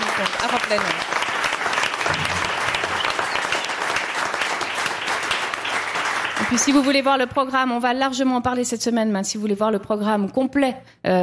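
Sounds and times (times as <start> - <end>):
audience applauding volunteers: 0.0 - 7.2
speech: 0.2 - 1.2, 6.5 - 11.2.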